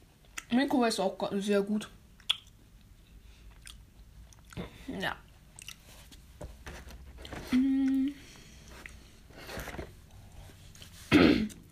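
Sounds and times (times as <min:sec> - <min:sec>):
speech: 0:00.5 - 0:02.0, 0:05.0 - 0:05.2, 0:07.5 - 0:08.0
chewing a Mars chocolate bar: 0:02.2 - 0:04.7, 0:05.5 - 0:05.9.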